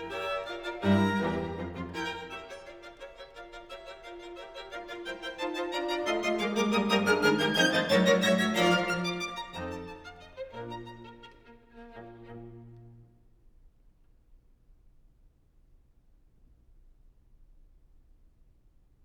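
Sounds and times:
string quartet playing a scherzo: 0.0 - 13.1.

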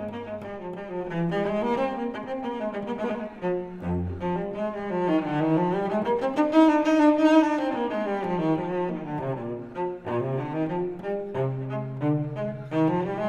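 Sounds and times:
solo cello suite in E: 0.0 - 13.2.

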